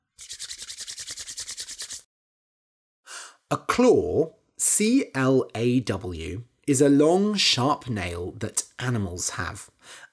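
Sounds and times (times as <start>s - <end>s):
hands rubbed briskly together to warm them: 0.2s - 2.1s
speech: 3.5s - 10.0s.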